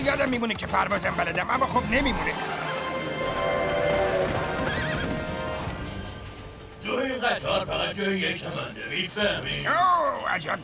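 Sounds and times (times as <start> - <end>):
speech: 0.1 - 2.7, 6.8 - 10.6
horse whinnying: 2.4 - 5.7
hooves clip-clopping: 4.0 - 5.7.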